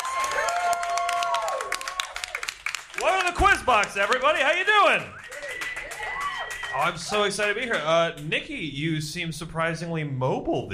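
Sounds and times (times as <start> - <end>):
audience applause greeting a quiz show host at a live event: 0.0 - 8.3
speech: 3.0 - 5.3, 6.7 - 10.7.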